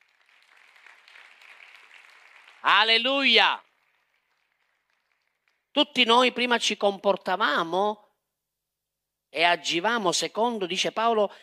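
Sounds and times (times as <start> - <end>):
sustained crowd applause of praise: 0.0 - 5.6
speech: 2.6 - 3.7, 5.8 - 8.0, 9.3 - 11.4.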